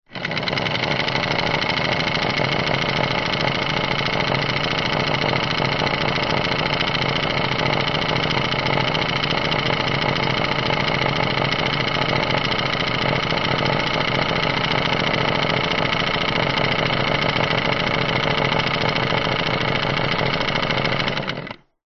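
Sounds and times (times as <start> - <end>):
industrial electric motor whirring: 0.1 - 21.6.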